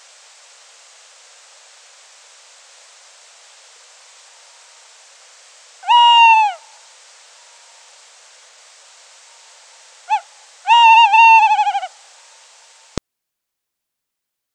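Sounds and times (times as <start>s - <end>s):
tawny owl call: 5.8s - 7.9s, 10.0s - 12.6s.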